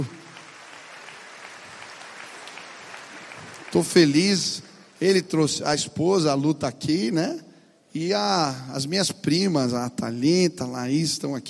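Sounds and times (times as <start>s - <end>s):
applause from a church gathering welcoming a guest pastor: 0.0s - 5.4s
speech: 3.7s - 11.4s.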